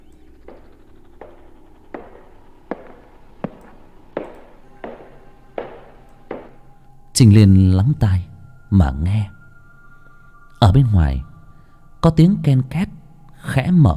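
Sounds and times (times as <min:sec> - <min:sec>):
clattering footsteps outside: 0:00.2 - 0:06.9
speech: 0:07.2 - 0:09.4, 0:10.6 - 0:11.3, 0:12.0 - 0:13.9.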